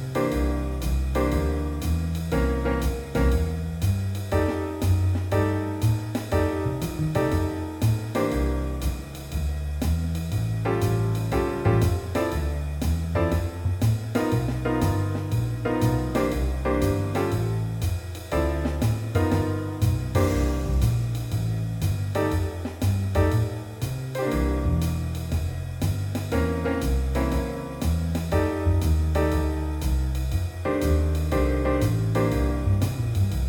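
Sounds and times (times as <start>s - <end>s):
jazz piano play-along blues in C at 120 bpm: 0.0s - 33.4s.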